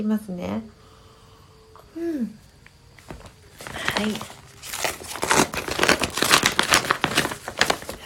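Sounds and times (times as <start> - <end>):
speech: 0.0 - 0.8, 2.0 - 2.4, 3.9 - 4.4
paper delivery package torn open: 3.6 - 8.0.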